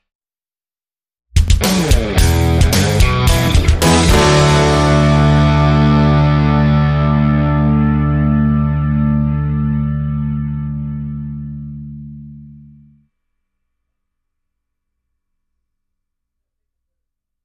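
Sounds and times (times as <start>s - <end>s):
classic rock music: 1.4s - 12.1s.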